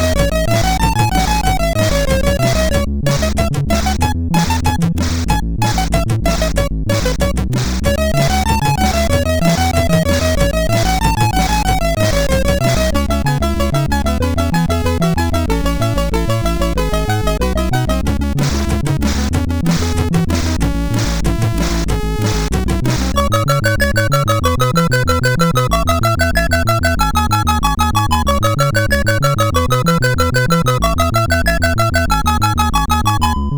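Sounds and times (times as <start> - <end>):
disco rock chiptune music on MOS6581R4 sound chip: 0.0 - 33.4.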